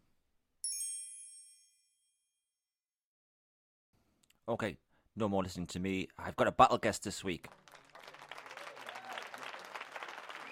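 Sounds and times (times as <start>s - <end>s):
speech: 4.5s - 7.8s
studio audience applause: 7.5s - 10.4s.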